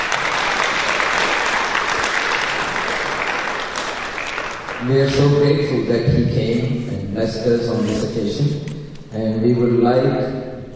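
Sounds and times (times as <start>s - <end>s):
audience round of applause: 0.0s - 5.4s
speech: 4.8s - 10.5s.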